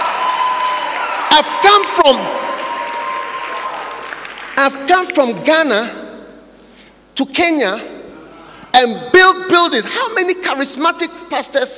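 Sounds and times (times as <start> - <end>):
crowd of church members shouting and cheering: 0.0 - 4.4
speech: 1.3 - 2.5, 4.6 - 6.0, 7.2 - 7.9, 8.7 - 11.7.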